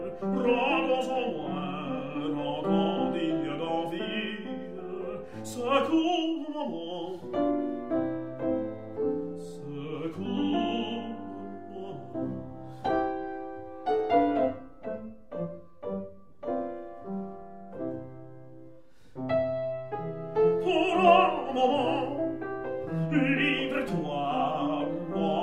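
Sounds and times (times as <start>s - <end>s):
person singing: 0.0s - 7.4s, 9.4s - 12.5s, 20.5s - 25.4s
piano: 0.0s - 25.4s.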